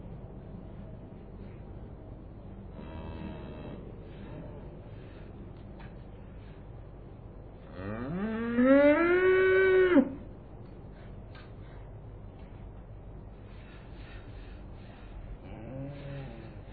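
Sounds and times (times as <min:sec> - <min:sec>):
cow mooing: 0:02.8 - 0:03.8, 0:07.7 - 0:10.2.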